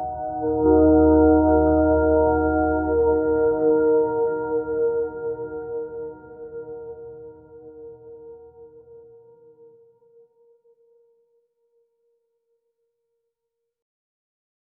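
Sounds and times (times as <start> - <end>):
minimalistic ambient music: 0.0 - 11.1.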